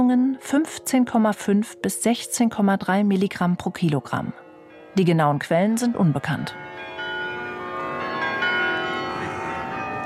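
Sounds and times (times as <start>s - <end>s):
speech: 0.1s - 4.4s, 5.0s - 6.9s
carillon bells ringing: 4.9s - 10.0s.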